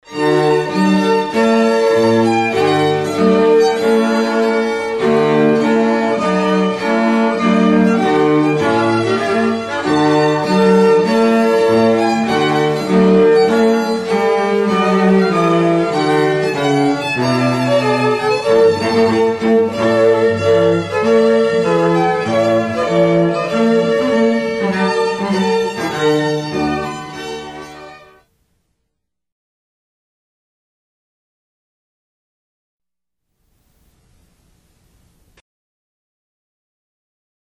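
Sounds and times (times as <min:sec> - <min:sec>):
trumpet piece: 0:00.1 - 0:28.3.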